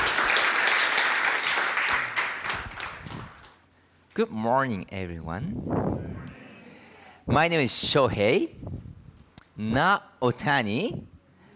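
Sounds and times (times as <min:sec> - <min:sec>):
church congregation applause welcoming a guest speaker: 0:00.0 - 0:03.6
speech: 0:04.2 - 0:06.3, 0:07.3 - 0:08.7, 0:09.6 - 0:11.1.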